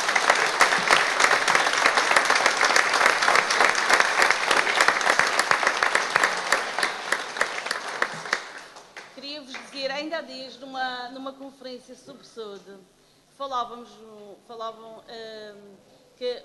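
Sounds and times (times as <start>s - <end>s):
round of applause: 0.0s - 9.8s
speech: 11.3s - 16.4s.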